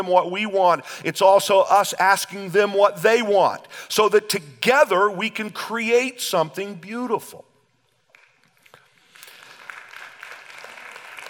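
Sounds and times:
speech: 0:00.0 - 0:07.5
audience clapping: 0:08.1 - 0:11.2.

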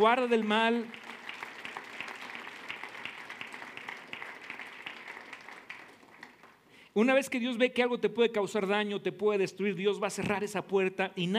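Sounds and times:
speech: 0:00.0 - 0:01.0, 0:07.0 - 0:11.3
crowd clapping: 0:00.0 - 0:06.8.

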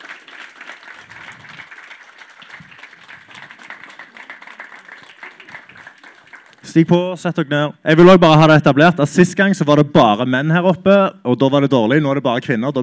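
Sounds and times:
audience applause: 0:00.0 - 0:06.6
speech: 0:06.8 - 0:12.8.

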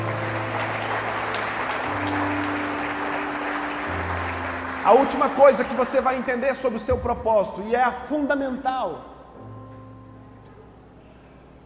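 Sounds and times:
audience applauding: 0:00.0 - 0:06.8
speech: 0:04.8 - 0:09.2.

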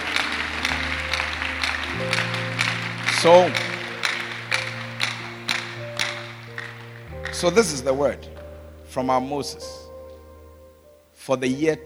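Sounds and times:
crowd clapping: 0:00.0 - 0:07.8
sustained low keyboard chords: 0:00.0 - 0:11.8
speech: 0:03.2 - 0:03.7, 0:07.4 - 0:08.3, 0:09.0 - 0:09.8, 0:11.2 - 0:11.8.

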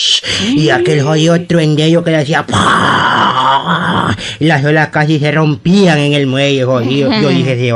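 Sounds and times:
voice imitating whistling wind: 0:00.1 - 0:01.3
speech: 0:00.2 - 0:07.7
laughter: 0:00.3 - 0:01.2, 0:06.7 - 0:07.7.

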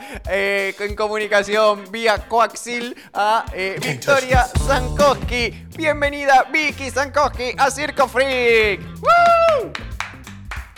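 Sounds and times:
speech: 0:00.1 - 0:09.8
lone person clapping: 0:09.2 - 0:10.7.

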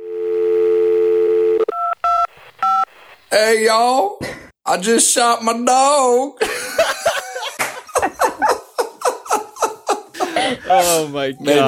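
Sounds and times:
telephone dial tone: 0:00.0 - 0:02.9
telephone keypad beeps dialing 911: 0:01.5 - 0:02.9
speech: 0:03.3 - 0:06.8, 0:10.7 - 0:11.6
laughter: 0:06.4 - 0:11.1.

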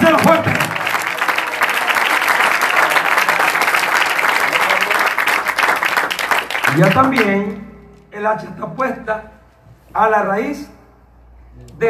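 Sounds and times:
audience applause: 0:00.0 - 0:07.3
speech: 0:06.8 - 0:09.4, 0:10.0 - 0:10.7.

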